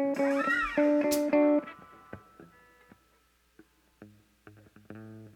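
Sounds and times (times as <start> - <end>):
drum samples mix: 0.1 - 2.0.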